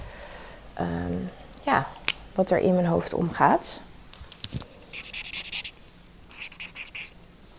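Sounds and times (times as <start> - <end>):
speech: 0.8 - 3.9
writing on paper, jotting down worries before bed: 4.8 - 7.5.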